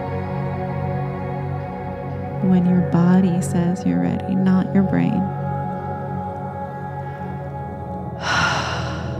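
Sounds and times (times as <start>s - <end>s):
steady low ambient drone: 0.0s - 9.1s
speech: 2.4s - 5.4s
held breath released during breathwork: 8.2s - 9.1s.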